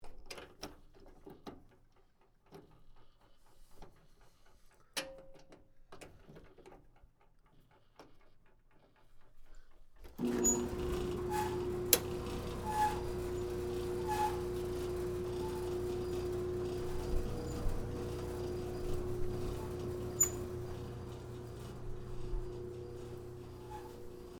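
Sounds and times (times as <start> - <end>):
squeaky dryer: 10.1 - 24.3.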